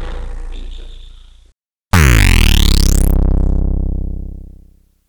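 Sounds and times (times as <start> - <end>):
distorted kick drum feedback, sliced: 1.9 - 4.7.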